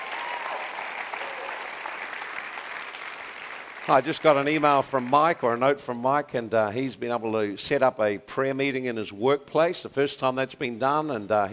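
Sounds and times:
audience applause: 0:00.0 - 0:05.4
speech: 0:03.9 - 0:11.5.

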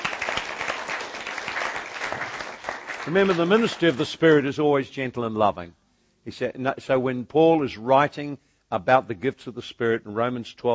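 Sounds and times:
audience clapping: 0:00.0 - 0:04.4
speech: 0:03.1 - 0:10.7.

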